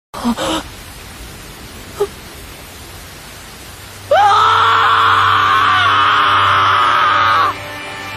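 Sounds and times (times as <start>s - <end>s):
scream: 4.1s - 7.6s.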